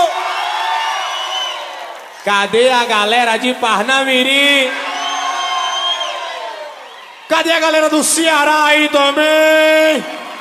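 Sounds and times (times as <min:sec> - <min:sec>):
crowd cheering and whooping: 0:00.0 - 0:02.4, 0:04.4 - 0:07.6, 0:10.0 - 0:10.4
speech: 0:02.2 - 0:04.8, 0:07.3 - 0:10.2.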